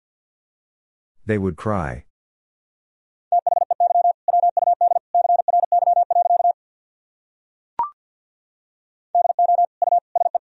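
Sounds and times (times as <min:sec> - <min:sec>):
person speaking: 0:01.2 - 0:02.1
mid-pitched Morse code beeps at 50wpm: 0:03.3 - 0:06.6, 0:09.2 - 0:10.4.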